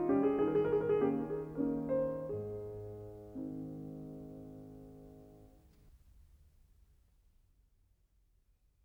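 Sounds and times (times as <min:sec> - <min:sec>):
waltz in F minor and A flat: 0:00.0 - 0:05.4.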